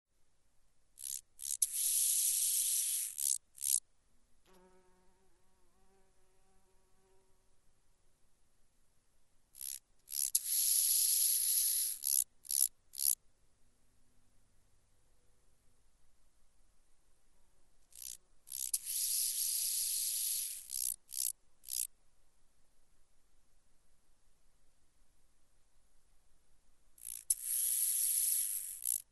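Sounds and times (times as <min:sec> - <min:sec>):
large banded grasshopper stridulation: 0:01.0 - 0:03.8, 0:09.6 - 0:13.2, 0:17.9 - 0:21.9, 0:27.0 - 0:29.0.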